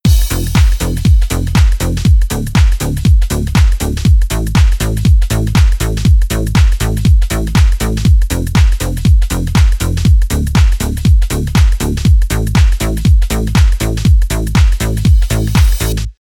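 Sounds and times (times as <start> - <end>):
synth bass: 0.0 - 16.2.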